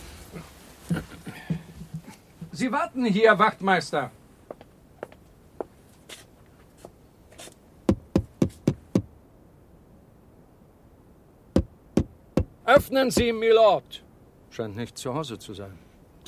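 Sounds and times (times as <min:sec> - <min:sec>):
speech: 0:02.6 - 0:04.2, 0:12.8 - 0:14.0, 0:14.6 - 0:16.2
knocking on a wooden door: 0:07.9 - 0:09.1, 0:11.6 - 0:13.3.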